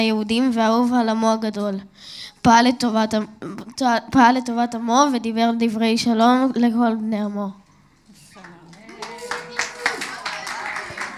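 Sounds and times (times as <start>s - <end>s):
speech: 0.0s - 7.6s
audience clapping: 8.4s - 11.1s.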